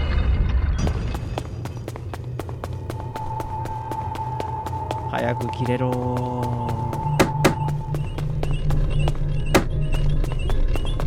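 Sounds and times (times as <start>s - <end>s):
footsteps of someone walking: 0.9s - 11.0s
speech: 5.2s - 6.8s.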